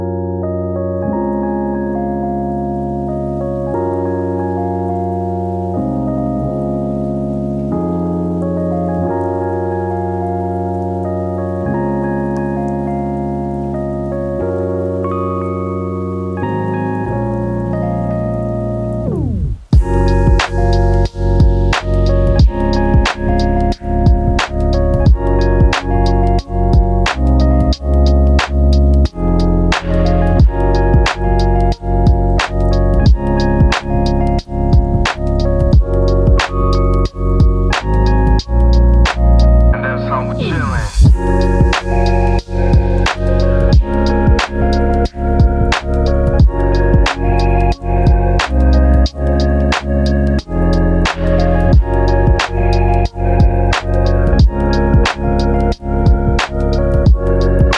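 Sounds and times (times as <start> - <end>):
gentle rain: 0.2 - 39.7, 40.9 - 57.7
chill lofi beats: 18.9 - 57.7.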